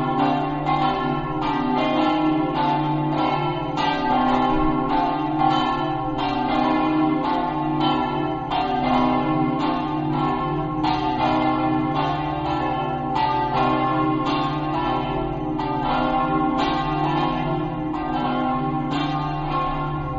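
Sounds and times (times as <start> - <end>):
bells ringing in Paderno: 0.0 - 20.1.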